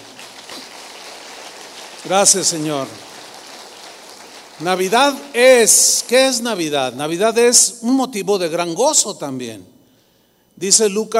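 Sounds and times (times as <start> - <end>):
audience applause: 0.0 - 6.4
speech: 2.0 - 3.1, 4.6 - 9.7, 10.6 - 11.1.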